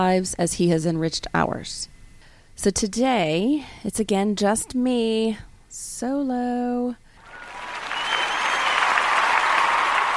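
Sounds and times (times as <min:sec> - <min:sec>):
speech: 0:00.0 - 0:01.9, 0:02.6 - 0:07.0
crowd applauding sound effect: 0:07.2 - 0:10.1.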